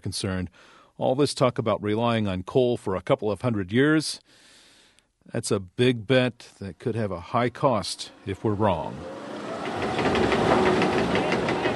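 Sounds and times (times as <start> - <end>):
speech: 0.0 - 4.5, 5.3 - 10.8
coal mining machinery grinding through a coal seam at Shea Mine Number 1: 8.0 - 11.7.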